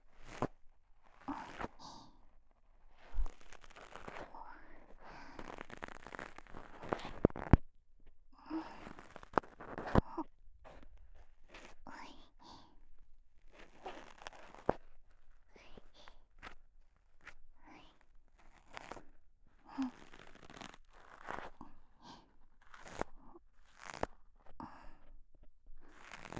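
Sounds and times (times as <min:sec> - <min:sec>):
ear cleaning scratching in the left ear loop: 0:00.2 - 0:02.0, 0:03.0 - 0:07.6, 0:08.7 - 0:10.1, 0:13.5 - 0:16.5, 0:19.9 - 0:21.5, 0:22.6 - 0:24.2, 0:25.9 - 0:26.3.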